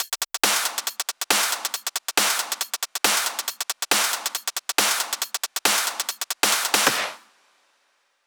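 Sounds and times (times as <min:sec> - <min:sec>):
drum and percussion loop: 0:00.0 - 0:07.2.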